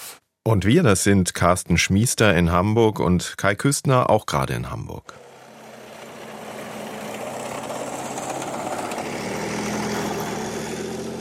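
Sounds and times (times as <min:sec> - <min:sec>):
speech: 0:00.5 - 0:05.2
Leopard 2 main battle tank heavy engine rumbling: 0:05.1 - 0:11.1.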